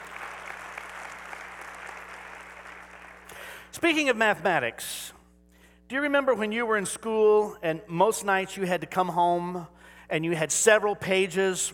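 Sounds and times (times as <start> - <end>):
audience applause: 0.0 - 3.5
speech: 3.7 - 5.1, 5.9 - 11.7.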